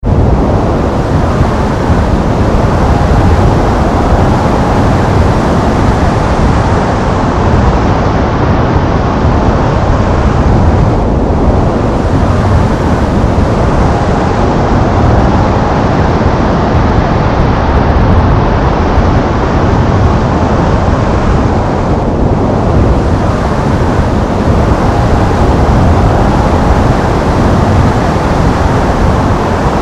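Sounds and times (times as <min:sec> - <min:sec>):
wind: 0:00.0 - 0:29.8.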